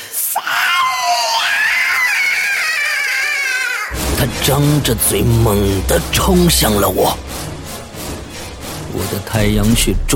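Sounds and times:
ghost's loud harsh scream in a horror story: 0:00.3 - 0:05.5
speech: 0:04.2 - 0:07.3, 0:08.9 - 0:10.1.

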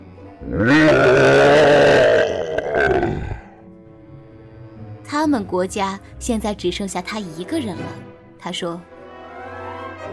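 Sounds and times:
speech: 0:00.4 - 0:01.4, 0:05.3 - 0:08.9
voice imitating a dinosaur roar: 0:00.4 - 0:03.6.

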